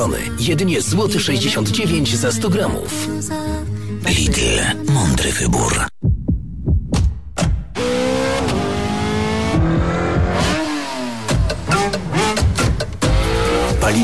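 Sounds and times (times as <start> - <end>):
speech: 0.1 - 6.0
car engine revving and accelerating: 7.7 - 14.0.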